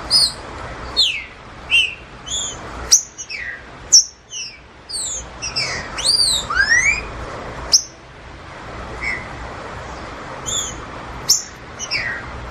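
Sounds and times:
green-winged saltator song: 0.1s - 7.1s, 7.7s - 8.0s, 9.0s - 9.4s, 10.4s - 12.3s.

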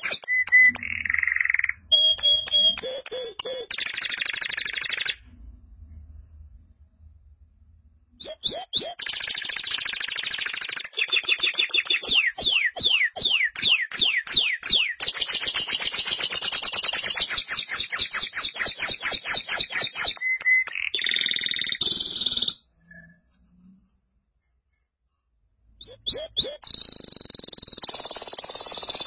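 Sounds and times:
canary singing: 0.0s - 5.2s, 8.2s - 22.6s, 25.8s - 29.0s.

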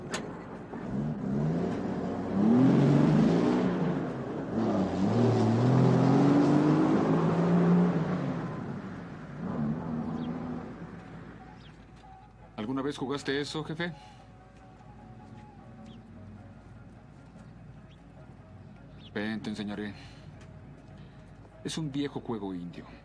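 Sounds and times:
heavy bus engine revving as the bus pulls away: 0.3s - 11.7s
speech: 12.9s - 14.2s, 19.5s - 20.2s, 21.7s - 23.0s.

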